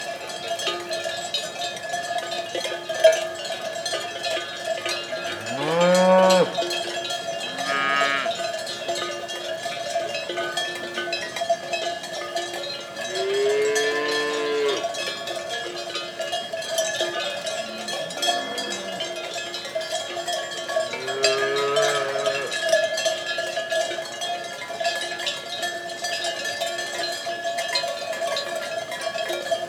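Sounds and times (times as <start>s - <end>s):
cowbells clanking: 0.0s - 29.6s
cow mooing: 5.2s - 6.7s, 7.5s - 8.4s, 13.1s - 14.9s, 20.9s - 22.7s.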